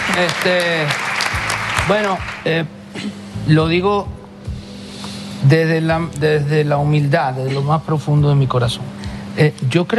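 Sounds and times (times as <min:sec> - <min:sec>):
crowd applauding: 0:00.0 - 0:02.5
speech: 0:00.2 - 0:01.1, 0:01.8 - 0:04.2, 0:05.4 - 0:09.9.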